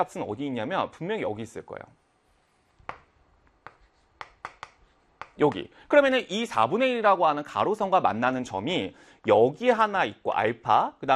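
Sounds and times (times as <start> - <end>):
speech: 0.0 - 2.0, 5.4 - 11.1
pen tapping while sketching a cosine graph: 2.8 - 5.7.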